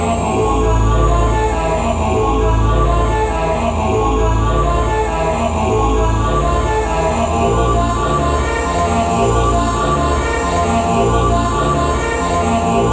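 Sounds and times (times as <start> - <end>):
choir singing: 0.0 - 12.9.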